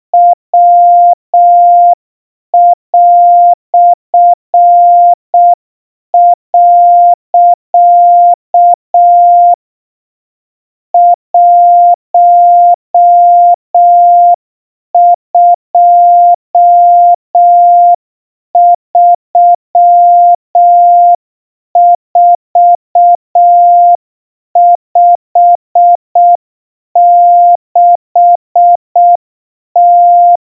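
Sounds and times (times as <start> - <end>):
Morse code tones at 700 Hz: 0.2 - 2.0, 2.6 - 5.6, 6.2 - 9.6, 11.0 - 14.4, 15.0 - 18.0, 18.6 - 21.2, 21.8 - 24.0, 24.6 - 26.4, 27.0 - 29.2, 29.8 - 30.4.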